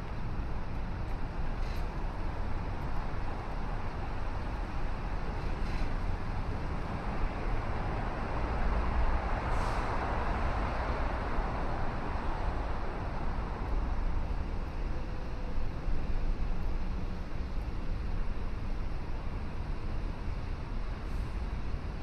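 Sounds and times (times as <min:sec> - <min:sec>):
passing vehicle: 0:00.0 - 0:15.6
traffic rumble along the river at sunrise: 0:00.0 - 0:22.0.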